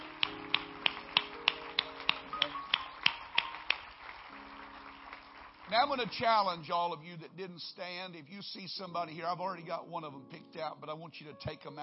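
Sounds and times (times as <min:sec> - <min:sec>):
audience hand clapping: 0:00.0 - 0:06.9
speech: 0:05.7 - 0:11.8.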